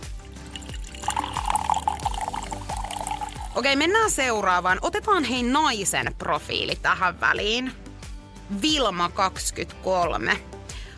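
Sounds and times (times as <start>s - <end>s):
drink pouring into a glass: 0.0s - 3.8s
speech: 3.6s - 7.8s, 8.5s - 10.5s.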